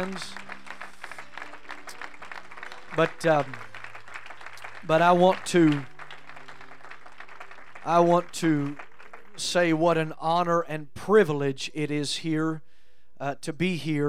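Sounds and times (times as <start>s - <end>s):
speech: 0.0s - 0.4s, 3.0s - 3.7s, 4.8s - 5.9s, 7.8s - 8.8s, 9.4s - 14.0s
audience applause: 0.0s - 9.4s.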